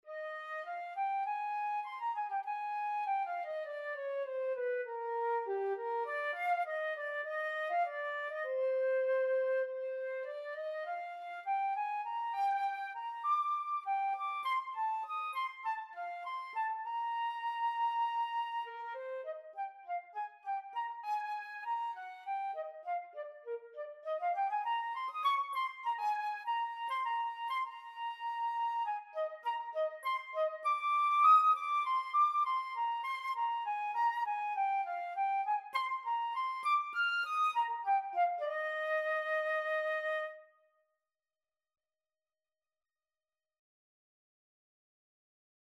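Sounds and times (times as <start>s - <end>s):
flute: 0.0s - 40.7s.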